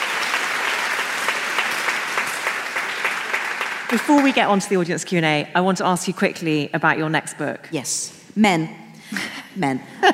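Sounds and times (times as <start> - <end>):
audience applause: 0.0 - 4.7
speech: 3.9 - 10.1.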